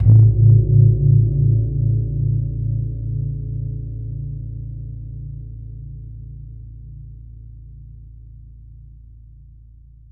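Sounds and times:
gong: 0:00.0 - 0:04.5.

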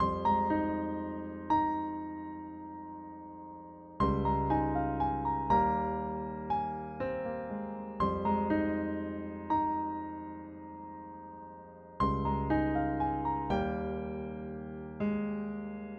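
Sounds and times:
classic piano loop in F minor: 0:00.0 - 0:15.9.

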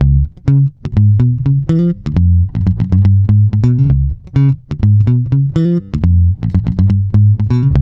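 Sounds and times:
boogaloo bass: 0:00.0 - 0:07.8.

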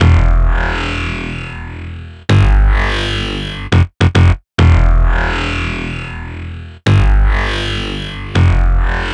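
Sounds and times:
bassline: 0:00.0 - 0:09.1.

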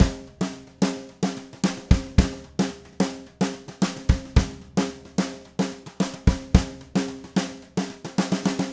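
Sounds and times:
DW Red Maple drum kit groove: 0:00.0 - 0:08.7.

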